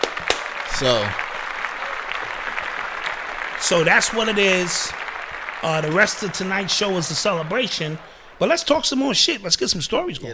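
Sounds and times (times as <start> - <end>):
audience clapping: 0.0 - 10.1
speech: 0.8 - 1.2, 3.6 - 5.0, 5.6 - 10.3.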